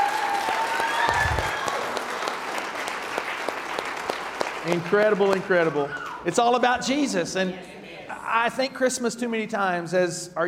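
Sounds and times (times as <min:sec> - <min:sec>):
audience applause: 0:00.0 - 0:06.3
speech: 0:04.6 - 0:10.4.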